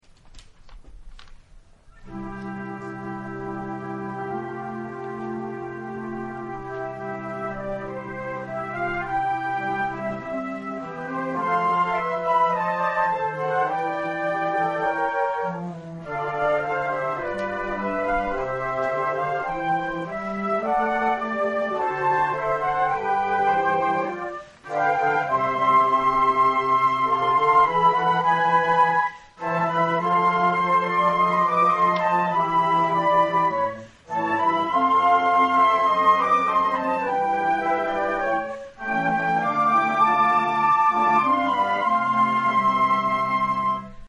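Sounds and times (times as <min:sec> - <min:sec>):
flute in concert: 0:01.9 - 0:44.0.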